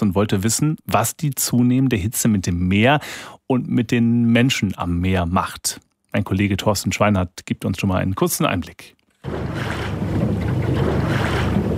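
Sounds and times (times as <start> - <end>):
speech: 0.0 - 10.4
catamaran gliding over water: 9.2 - 11.7.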